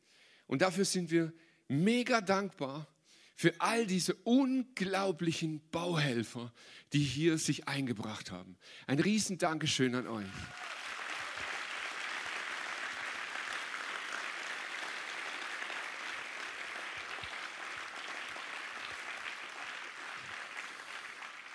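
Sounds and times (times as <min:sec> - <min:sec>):
speech: 0:00.5 - 0:10.7
audience applause: 0:10.2 - 0:21.5.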